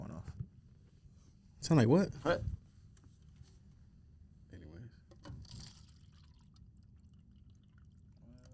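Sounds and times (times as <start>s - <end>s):
speech: 1.6s - 2.6s
French press coffee pouring into a cup: 5.3s - 8.5s.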